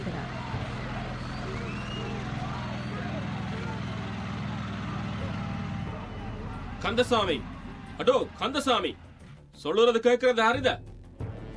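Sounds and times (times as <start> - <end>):
indistinct voices: 0.0 - 8.7
bulldozer engine rumbling: 0.0 - 9.2
speech: 6.8 - 10.9.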